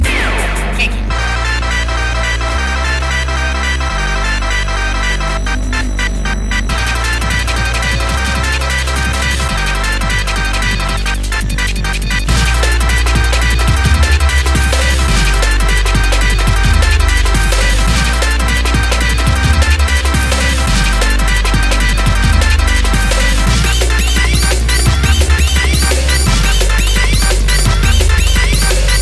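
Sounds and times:
drum and bass music: 0.0s - 29.0s.

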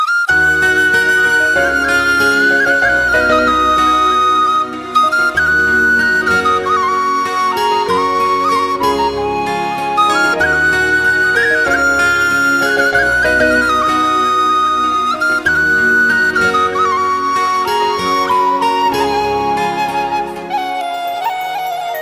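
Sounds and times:
romantic song: 0.0s - 22.0s.

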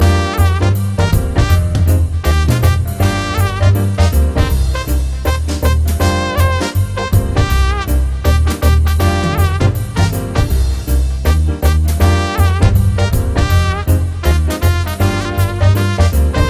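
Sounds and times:
trumpet: 0.0s - 16.4s.

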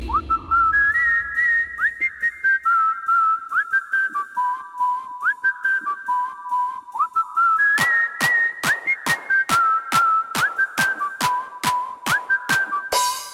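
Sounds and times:
whistle: 0.0s - 13.3s.

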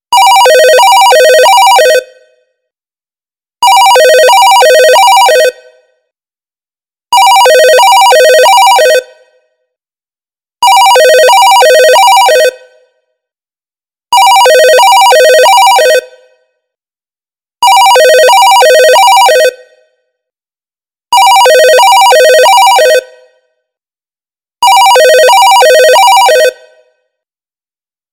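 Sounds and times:
vintage phone: 0.1s - 2.0s, 3.6s - 5.6s, 7.1s - 9.0s, 10.6s - 12.5s, 14.1s - 16.0s, 17.6s - 19.5s, 21.1s - 23.0s, 24.6s - 26.6s.

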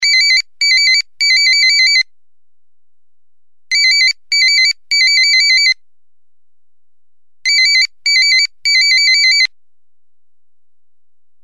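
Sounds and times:
90s phone ringtone: 0.0s - 2.0s, 3.7s - 5.8s, 7.5s - 9.5s.

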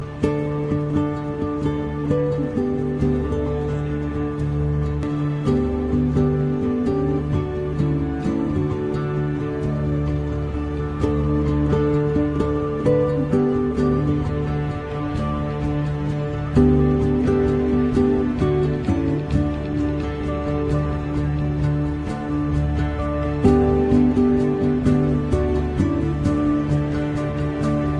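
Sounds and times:
two-string instrument: 0.0s - 27.9s.

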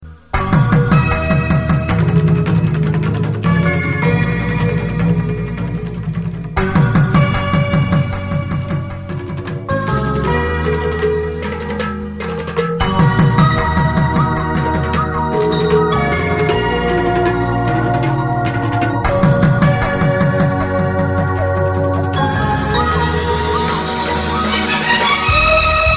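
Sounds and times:
melody tone: 0.4s - 25.9s.

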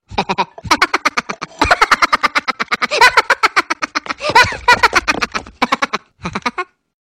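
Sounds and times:
funny laugh: 0.1s - 6.8s.

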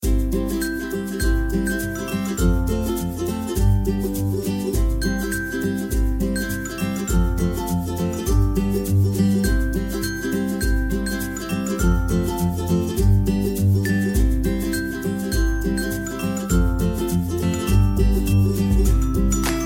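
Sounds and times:
upbeat music: 0.0s - 19.6s.

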